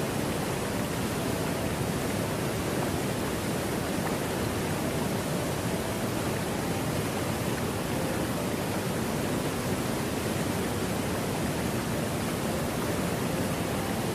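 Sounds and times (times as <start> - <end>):
waterfall roaring: 0.0 - 14.1.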